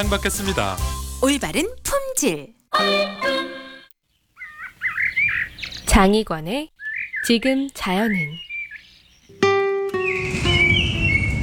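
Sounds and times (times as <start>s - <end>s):
speech: 0.0s - 3.4s, 6.0s - 8.5s
steady noise: 0.0s - 11.4s
Chinese blackbird singing in a city park: 4.4s - 5.9s, 6.8s - 7.3s, 8.0s - 11.4s.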